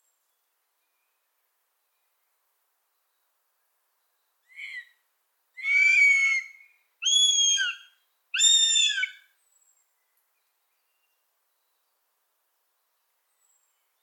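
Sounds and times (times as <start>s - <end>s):
young northern goshawk calling, fledged but not yet flying: 5.6s - 9.2s.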